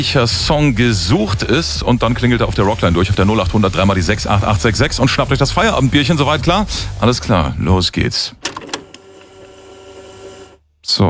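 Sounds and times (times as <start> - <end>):
speech: 0.0 - 8.6, 10.9 - 11.0
cassette tape pushed into a walkman: 8.4 - 9.4
faint steady mechanical hum: 8.4 - 10.6.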